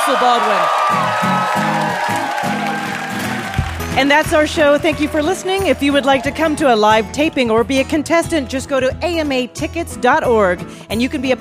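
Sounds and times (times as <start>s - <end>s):
live audience applause: 0.0s - 6.6s
crowd cheering: 0.0s - 7.1s
speech: 0.1s - 2.2s, 4.0s - 11.3s.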